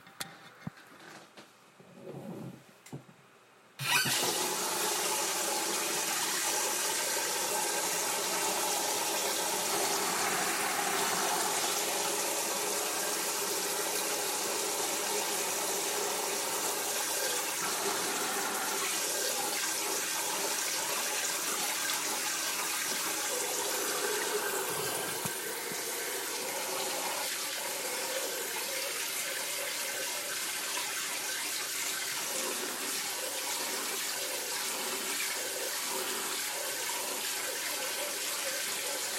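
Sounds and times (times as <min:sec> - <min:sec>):
giant plastic bucket filled with water from a hose nozzle in a kitchen: 0:03.8 - 0:39.1.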